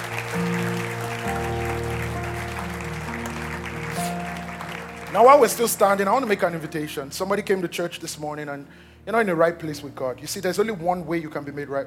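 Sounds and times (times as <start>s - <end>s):
church audience clapping hands: 0.0s - 6.8s
speech: 5.1s - 11.8s.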